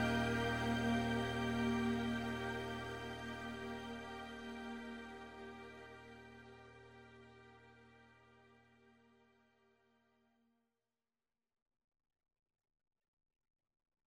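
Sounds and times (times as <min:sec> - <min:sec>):
strings: 0:00.0 - 0:08.5.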